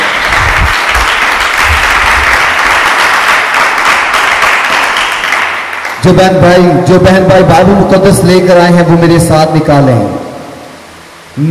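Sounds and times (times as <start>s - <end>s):
loud applause from audience: 0.0s - 6.1s
speech: 6.0s - 10.2s.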